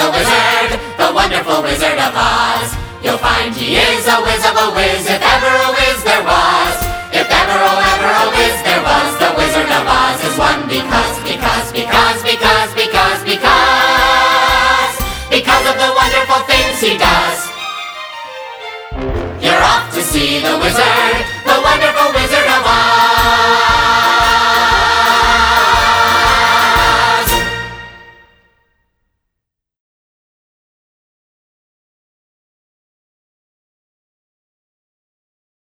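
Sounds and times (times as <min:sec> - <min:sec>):
complete song tracks with guide vocals: 0:00.0 - 0:17.8, 0:19.2 - 0:28.2.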